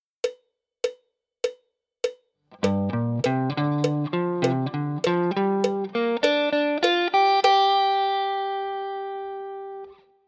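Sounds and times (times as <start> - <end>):
G minor pentatonic guitar lick: 2.5 - 10.2.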